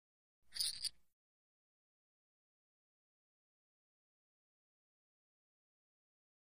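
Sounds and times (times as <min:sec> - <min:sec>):
poker chips moving: 0:00.6 - 0:00.9.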